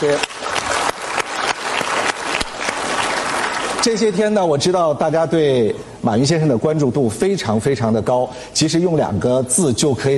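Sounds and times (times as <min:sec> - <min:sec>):
speech: 0:00.0 - 0:00.4, 0:03.8 - 0:10.1
large audience applause: 0:00.0 - 0:04.2.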